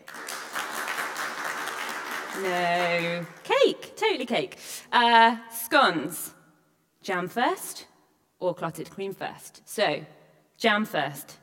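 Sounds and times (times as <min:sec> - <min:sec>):
audience clapping: 0:00.0 - 0:03.6
speech: 0:02.4 - 0:06.4, 0:07.0 - 0:11.4.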